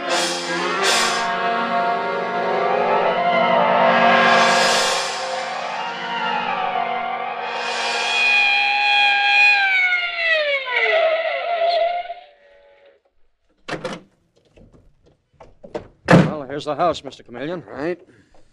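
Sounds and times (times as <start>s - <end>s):
police squad car siren: 0.1s - 12.2s
speech: 16.6s - 18.2s.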